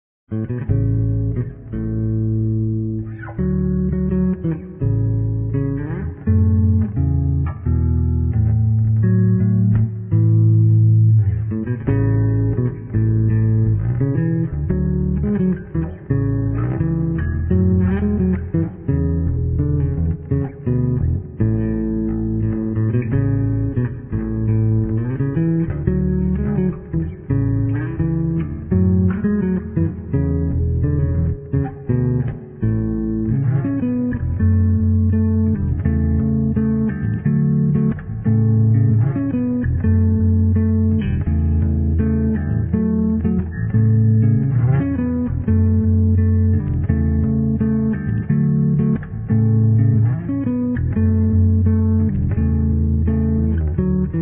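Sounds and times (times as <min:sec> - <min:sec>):
electric bass guitar: 0:00.3 - 0:54.2.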